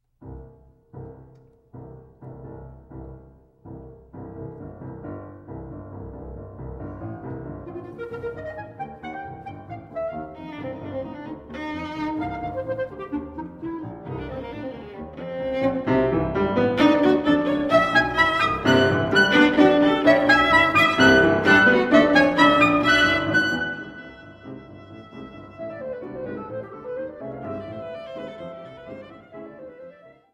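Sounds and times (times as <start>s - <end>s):
trio dance music: 7.5s - 29.8s.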